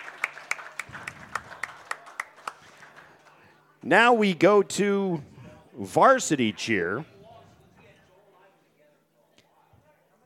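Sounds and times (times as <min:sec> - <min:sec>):
audience applause for cheerleaders: 0:00.0 - 0:03.4
speech: 0:03.8 - 0:07.1.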